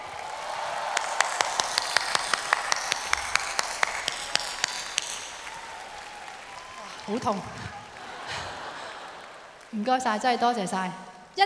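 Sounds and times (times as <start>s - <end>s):
sharp hand claps: 0.0s - 10.2s
laughter: 0.2s - 10.8s
speech: 7.1s - 7.8s, 9.7s - 11.4s.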